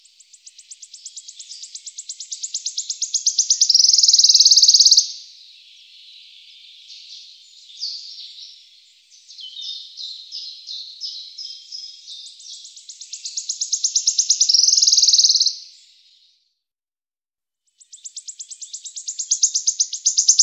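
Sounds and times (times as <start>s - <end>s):
Wood warbler song of accelerating ticking notes into a sibilant trill: 0.0s - 16.4s, 17.7s - 20.4s.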